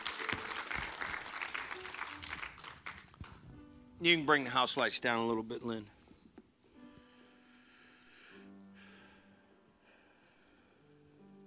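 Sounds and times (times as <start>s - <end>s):
audience applause: 0.0s - 3.4s
speech: 4.0s - 6.0s.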